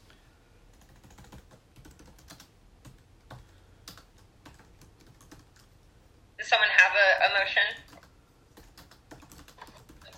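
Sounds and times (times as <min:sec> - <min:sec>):
typing on a computer keyboard during a meeting: 0:00.7 - 0:05.7, 0:07.8 - 0:10.1
speech: 0:07.2 - 0:07.8.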